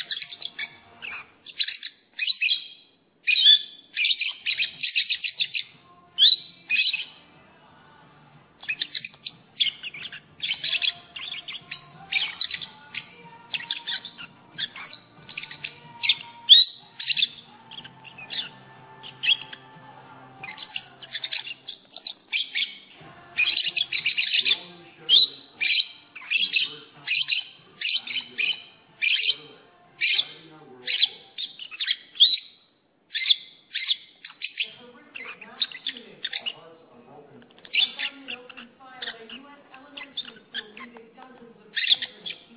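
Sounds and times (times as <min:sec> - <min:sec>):
lovebird chattering: 0:00.0 - 0:07.2, 0:08.6 - 0:19.8, 0:20.4 - 0:36.7, 0:37.4 - 0:42.5.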